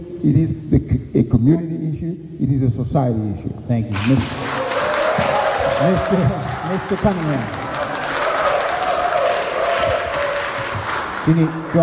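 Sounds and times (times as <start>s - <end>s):
speech: 0.0s - 4.5s, 5.8s - 7.6s, 11.2s - 11.8s
audience applause: 4.0s - 11.8s.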